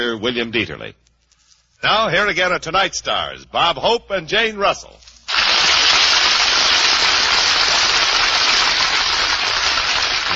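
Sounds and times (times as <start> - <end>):
speech: 0.0 - 1.1, 1.8 - 5.1
studio audience applause: 5.3 - 10.3.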